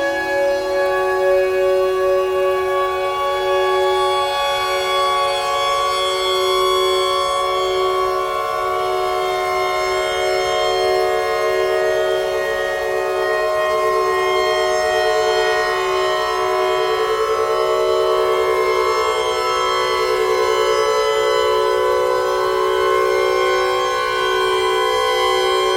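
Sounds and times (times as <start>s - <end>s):
tornado siren: 0.0s - 25.7s.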